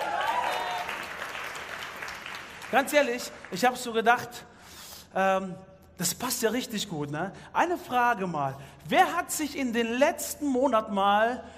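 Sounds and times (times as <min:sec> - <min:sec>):
crowd applause: 0:00.0 - 0:03.6
speech: 0:02.7 - 0:04.5, 0:05.1 - 0:11.5.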